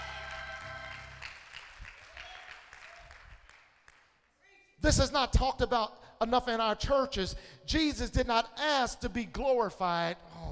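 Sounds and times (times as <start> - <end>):
sustained organ-like chord: 0.0 - 1.2
audience clapping hands: 0.0 - 4.3
speech: 4.8 - 10.5.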